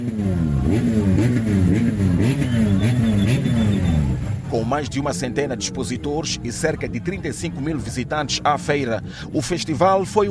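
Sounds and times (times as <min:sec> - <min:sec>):
engines revving at a festival: 0:00.0 - 0:10.2
speech: 0:04.7 - 0:10.2.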